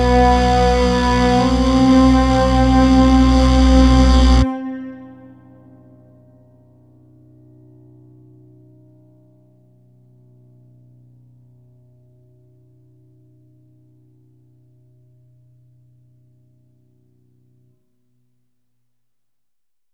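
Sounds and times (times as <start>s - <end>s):
distorted bass: 0.0s - 5.3s
cello: 0.0s - 5.8s
piano: 0.0s - 7.6s.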